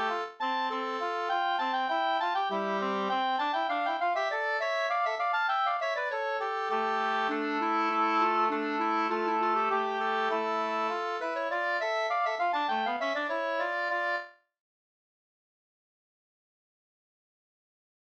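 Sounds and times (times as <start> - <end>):
polska folk dance tune: 0.0 - 14.3.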